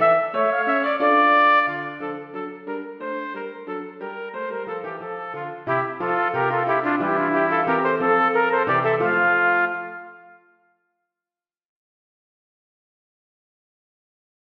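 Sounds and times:
two trumpets playing a passepied: 0:00.0 - 0:02.8, 0:03.6 - 0:10.6
piano: 0:00.0 - 0:10.5.

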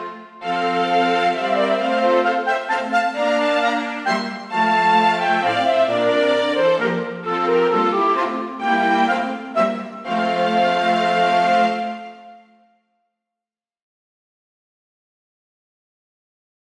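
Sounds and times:
clarinet and string quartet playing a minuet without piano: 0:00.0 - 0:12.6.

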